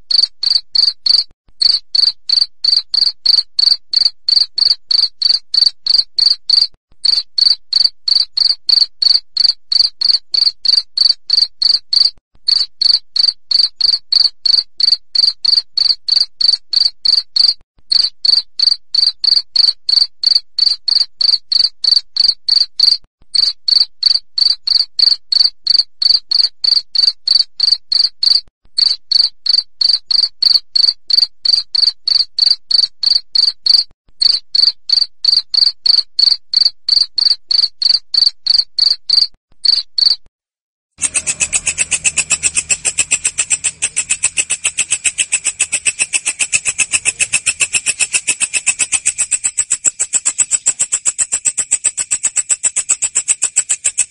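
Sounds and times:
cricket chirping: 0.1 - 40.2, 41.0 - 54.0.

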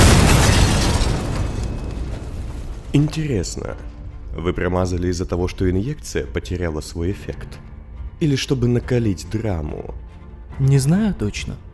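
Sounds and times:
explosion: 0.0 - 3.6
speech: 3.0 - 11.6.

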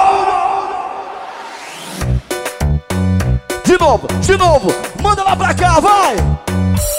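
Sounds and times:
crowd at a live DJ party shouting and cheering: 0.0 - 1.9, 3.6 - 6.8
speech: 3.8 - 6.5.

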